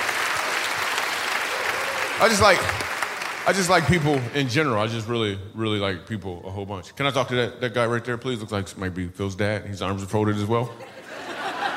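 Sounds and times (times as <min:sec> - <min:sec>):
audience applause: 0:00.0 - 0:04.9
speech: 0:02.2 - 0:11.0
laughter: 0:10.7 - 0:11.7.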